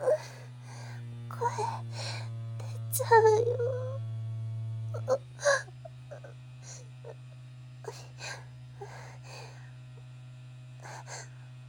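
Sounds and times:
vibrator buzzing: 0.0s - 11.6s
speech: 3.0s - 3.8s.

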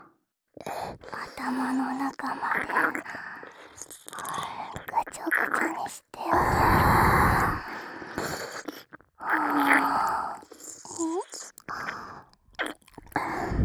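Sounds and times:
voice actor whispering in ASMR: 0.9s - 13.6s
ear licking ASMR: 6.5s - 13.6s.

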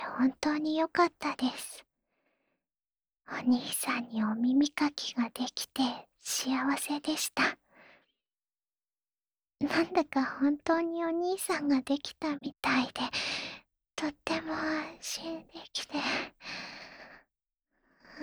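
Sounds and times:
ASMR sleep voice: 0.0s - 1.8s, 3.4s - 7.5s, 9.6s - 13.1s, 14.0s - 16.2s.

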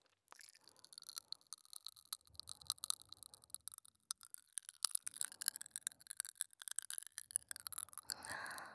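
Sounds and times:
fizzy crackling and crunching of hard candy being eaten: 0.3s - 8.7s
plastic wrapper tearing and crinkling: 0.3s - 8.7s.

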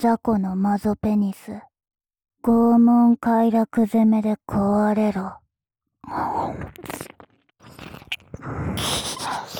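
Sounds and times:
speech: 0.0s - 1.7s, 2.4s - 5.4s, 6.0s - 9.5s
wet ear licking: 6.8s - 9.5s.

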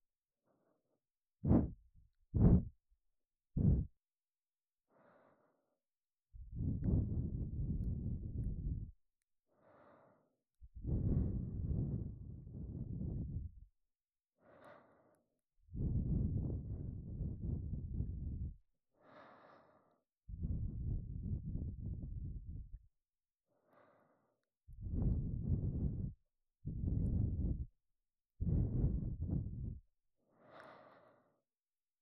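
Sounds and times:
breathing loop on the left side for sleep: 0.4s - 1.8s, 3.6s - 3.9s, 4.9s - 5.8s, 6.4s - 8.9s, 9.5s - 13.6s, 14.4s - 22.7s, 23.5s - 27.7s, 28.4s - 31.5s.

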